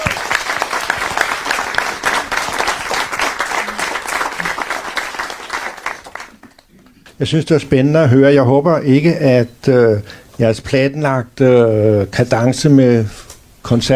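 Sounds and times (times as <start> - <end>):
audience applause welcoming the chairman of a Danish doctors' association: 0.0 - 6.7
speech: 7.2 - 13.9.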